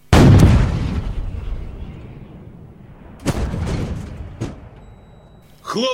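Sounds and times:
cannon blast: 0.0s - 5.4s.

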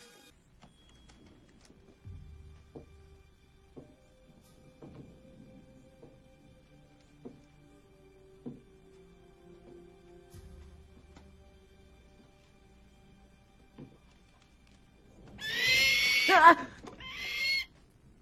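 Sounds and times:
bird screeching, possibly an owl: 15.4s - 17.7s.

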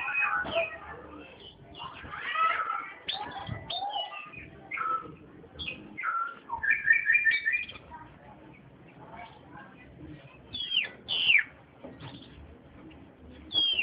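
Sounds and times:
Oriental magpie-robin whistled chirping song: 0.0s - 0.9s, 3.0s - 7.8s, 10.5s - 11.5s, 13.5s - 13.8s.

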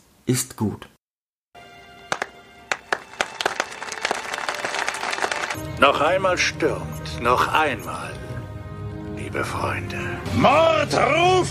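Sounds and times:
speech: 0.3s - 1.0s, 5.8s - 8.2s, 9.3s - 11.4s
slow clap applause: 2.0s - 5.6s.

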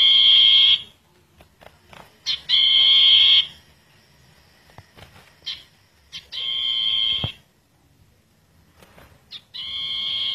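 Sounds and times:
bird song of long and slurred whistles: 2.3s - 3.6s, 5.4s - 7.4s, 9.3s - 10.3s.

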